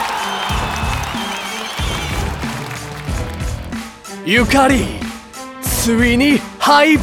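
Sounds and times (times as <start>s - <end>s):
audience applause: 0.0s - 4.0s
pulsing bass-heavy music track: 0.5s - 7.0s
speech: 4.2s - 5.0s, 5.8s - 7.0s.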